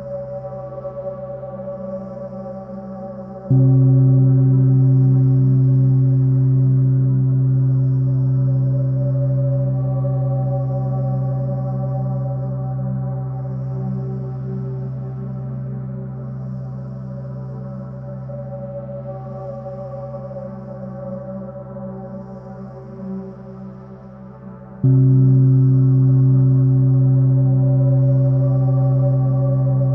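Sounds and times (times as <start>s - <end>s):
space soundscape: 0.0s - 29.9s
gong: 1.3s - 16.0s, 24.8s - 29.9s.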